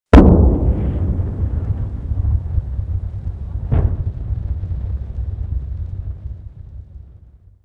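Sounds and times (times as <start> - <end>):
artillery fire: 0.1 - 7.5.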